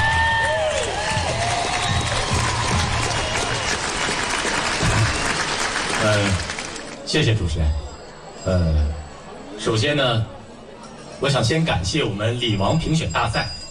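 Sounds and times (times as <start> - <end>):
crowd applause: 0.0 - 7.1
scattered cheers and voices: 0.0 - 13.6
speech: 7.1 - 7.8, 8.4 - 9.0, 9.6 - 10.4, 11.2 - 13.6.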